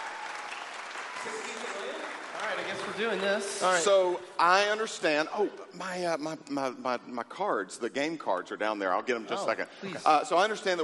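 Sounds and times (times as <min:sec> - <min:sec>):
audience applause: 0:00.0 - 0:03.5
speech: 0:02.6 - 0:10.8.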